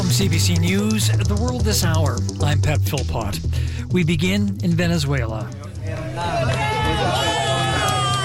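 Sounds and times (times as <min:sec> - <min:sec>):
speech: 0:00.2 - 0:06.6
crowd cheering and shouting as a man is pulled alive from earthquake rubble in Venezuela: 0:05.6 - 0:08.2.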